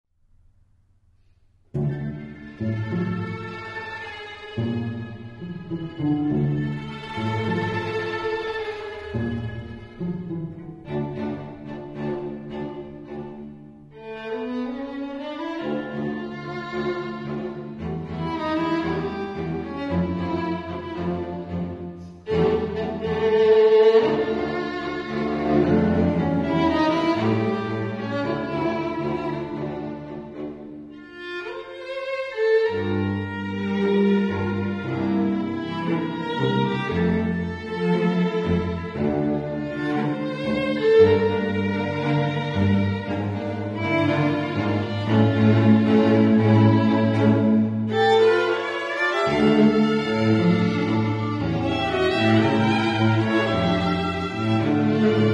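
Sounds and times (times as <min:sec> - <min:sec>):
tango music: 0:01.8 - 0:55.3.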